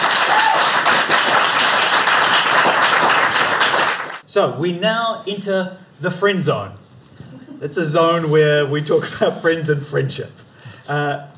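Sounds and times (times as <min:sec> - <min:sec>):
round of applause: 0:00.0 - 0:04.2
speech: 0:04.4 - 0:11.3.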